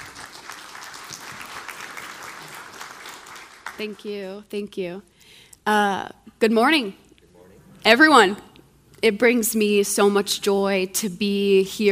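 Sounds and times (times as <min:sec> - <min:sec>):
congregation applauding a woman speaker: 0:00.0 - 0:04.2
speech: 0:03.8 - 0:07.0, 0:07.8 - 0:11.8.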